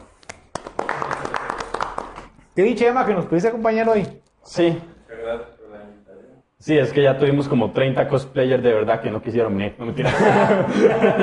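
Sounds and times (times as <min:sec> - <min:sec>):
small group clapping: 0:00.0 - 0:02.5
speech: 0:02.6 - 0:05.6, 0:06.6 - 0:11.2
laughter: 0:10.0 - 0:11.2.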